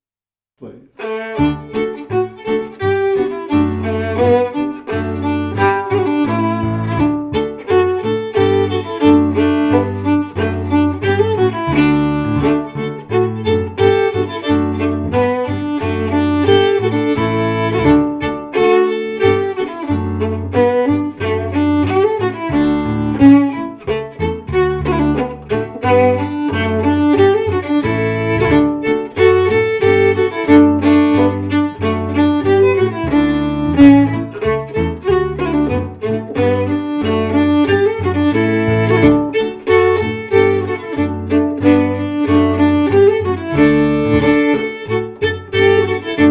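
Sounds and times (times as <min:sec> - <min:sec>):
fiddle playing a march: 0:01.0 - 0:46.2
piano: 0:01.0 - 0:46.2.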